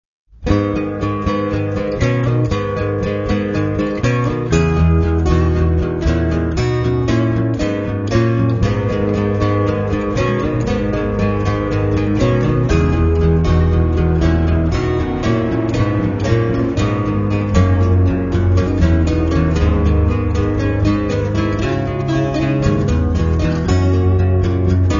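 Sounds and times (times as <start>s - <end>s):
acoustic medley: 0.4s - 24.9s.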